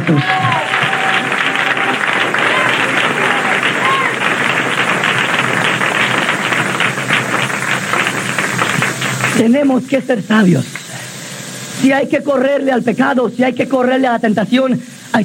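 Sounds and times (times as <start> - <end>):
audience clapping hands: 0.0 - 9.5
speech: 0.1 - 0.4, 9.4 - 10.8, 11.8 - 15.2.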